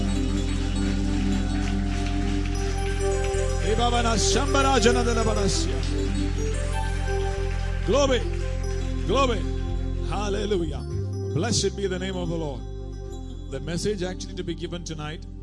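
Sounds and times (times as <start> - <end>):
audience clapping: 0.0 - 11.1
speech: 3.8 - 6.1, 7.9 - 8.4, 9.1 - 9.5, 10.1 - 12.7, 13.5 - 15.3.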